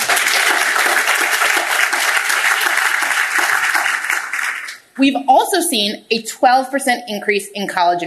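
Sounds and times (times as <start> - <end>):
crowd applause: 0.0 - 4.8
speech: 5.0 - 8.0.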